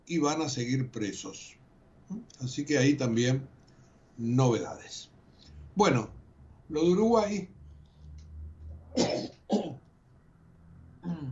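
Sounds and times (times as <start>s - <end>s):
speech: 0.1s - 3.6s, 4.2s - 5.1s, 5.8s - 7.6s
sneeze: 9.0s - 9.8s.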